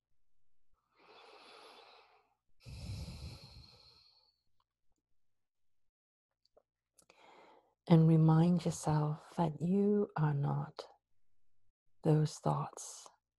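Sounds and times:
deep breath in during a guided meditation: 1.0s - 4.3s, 7.1s - 7.7s
speech: 7.9s - 10.9s, 12.0s - 13.1s.

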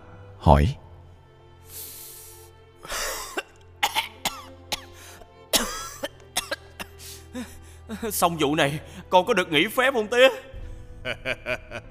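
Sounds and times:
speech: 0.4s - 0.8s, 8.0s - 11.8s
violent coughing: 2.8s - 7.5s
laughter: 11.0s - 11.8s.

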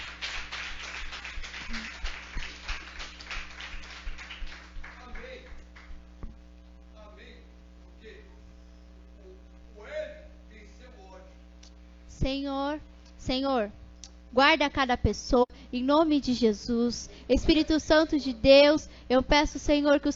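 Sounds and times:
crowd clapping: 0.0s - 6.0s
steady electrical hum: 0.0s - 20.1s
speech: 12.2s - 20.1s.

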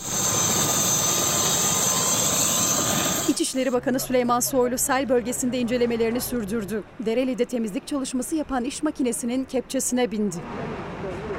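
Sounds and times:
helicopter taking off: 0.0s - 3.7s
speech: 3.5s - 10.7s.

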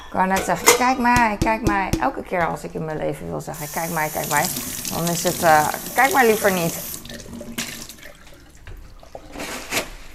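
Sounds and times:
speech: 0.1s - 6.9s
running tap water rinsing a large cup: 3.6s - 9.5s.

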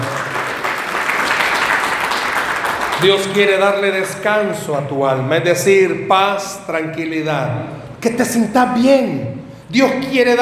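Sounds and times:
audience applauding: 0.0s - 4.3s
speech: 3.0s - 10.4s.

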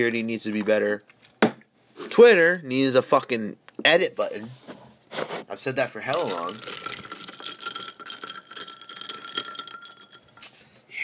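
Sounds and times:
speech: 0.0s - 1.3s, 2.2s - 4.7s, 5.6s - 7.0s
ice rattling in a drink: 6.1s - 10.5s.

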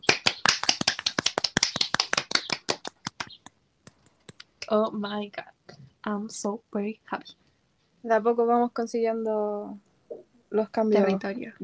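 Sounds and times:
applause: 0.0s - 3.4s
speech: 4.7s - 7.4s, 8.0s - 9.9s, 10.5s - 11.6s.

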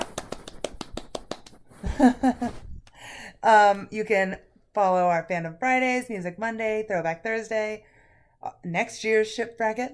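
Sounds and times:
small group clapping: 0.0s - 1.6s
speech: 1.9s - 2.6s, 3.4s - 9.9s.

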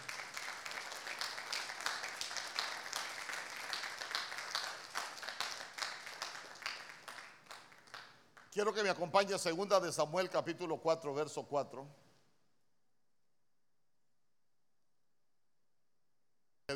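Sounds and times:
audience clapping: 0.0s - 9.0s
speech: 8.6s - 12.0s.

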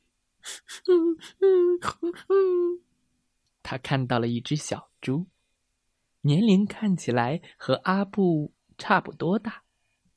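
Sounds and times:
person imitating crying with sniffles and whimpers: 0.5s - 2.8s
speech: 3.7s - 5.4s, 6.2s - 9.6s.

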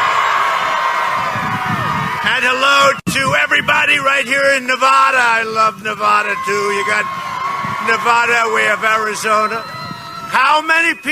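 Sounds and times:
rally crowd cheering: 0.0s - 3.0s, 6.2s - 11.0s
speech: 2.5s - 7.2s, 7.8s - 11.0s.

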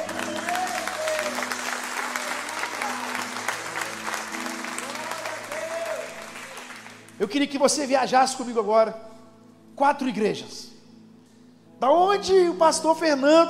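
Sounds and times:
audience applauding: 0.0s - 7.2s
speech: 7.2s - 9.1s, 9.8s - 10.7s, 11.8s - 13.4s.

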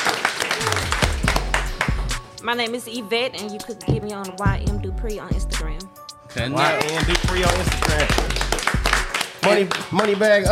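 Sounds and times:
audience clapping: 0.0s - 2.2s, 6.6s - 10.5s
speech: 2.4s - 8.3s, 9.4s - 10.5s.

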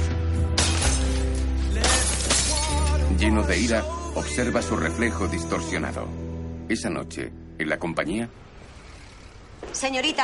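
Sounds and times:
mirror glass shattering from punches: 0.0s - 3.2s
steady low droning music bed: 0.0s - 9.5s
speech: 3.2s - 8.5s, 9.8s - 10.2s.

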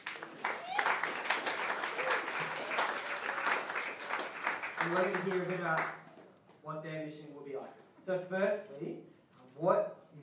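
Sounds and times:
audience clapping: 0.0s - 6.3s
speech: 4.8s - 6.0s, 6.6s - 10.2s.

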